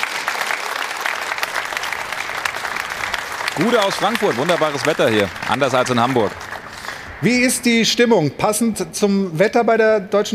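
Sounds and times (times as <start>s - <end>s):
studio audience applause: 0.0s - 7.9s
speech: 3.6s - 6.4s, 7.2s - 10.3s.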